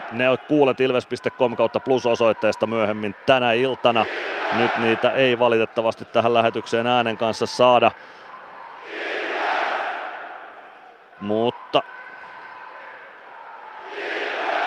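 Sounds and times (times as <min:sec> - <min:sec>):
ice hockey fans chanting and cheering: 0:00.0 - 0:14.6
speech: 0:00.1 - 0:08.1, 0:11.2 - 0:11.9.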